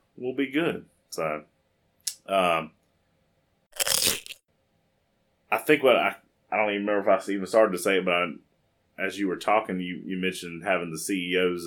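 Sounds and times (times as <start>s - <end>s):
speech: 0.2s - 1.5s, 2.3s - 2.8s, 5.5s - 11.6s
biting into a potato chip: 3.8s - 4.4s.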